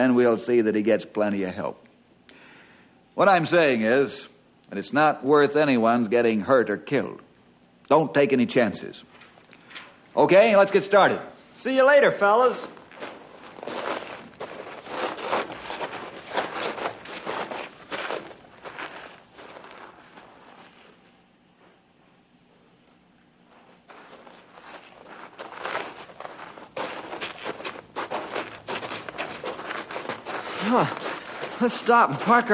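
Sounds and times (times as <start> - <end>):
speech: 0.0 - 1.8, 3.2 - 7.2, 7.9 - 9.1, 10.2 - 13.1, 31.6 - 32.5
footsteps of men walking: 12.4 - 22.2, 23.4 - 32.5.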